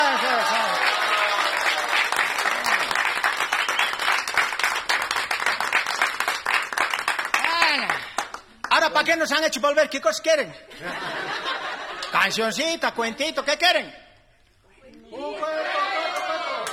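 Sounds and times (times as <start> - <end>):
audience applause: 0.0 - 8.8, 16.0 - 16.7
speech: 9.0 - 14.0
laughter: 10.7 - 13.5.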